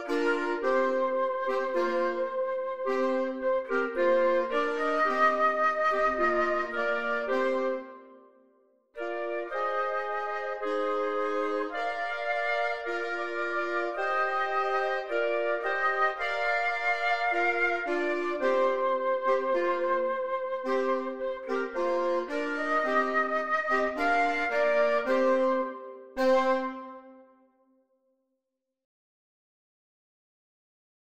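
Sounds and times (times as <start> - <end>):
brass trio playing: 0.0 - 7.9, 9.0 - 27.1.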